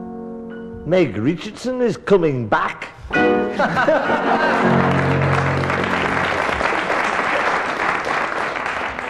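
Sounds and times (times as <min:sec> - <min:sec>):
speech: 0:00.9 - 0:05.4
cheering and laughter: 0:03.6 - 0:05.3
studio audience applause: 0:04.0 - 0:09.0.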